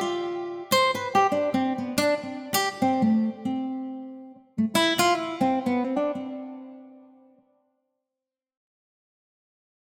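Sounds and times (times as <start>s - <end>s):
guitar improvisation: 0.0s - 7.4s.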